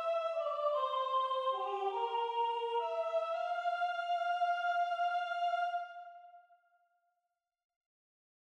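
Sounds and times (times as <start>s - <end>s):
soprano singing: 0.0s - 6.2s.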